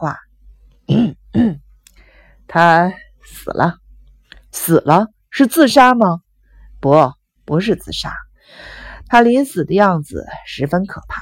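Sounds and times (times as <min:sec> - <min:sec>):
speech: 0:00.0 - 0:00.2, 0:02.5 - 0:03.8, 0:04.6 - 0:06.2, 0:06.8 - 0:11.1
throat clearing: 0:00.9 - 0:01.7.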